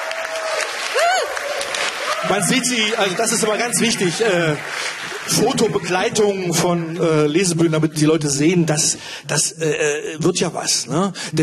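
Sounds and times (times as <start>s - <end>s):
audience clapping at a literary reading-stage event: 0.0s - 9.0s
speech: 2.2s - 11.4s.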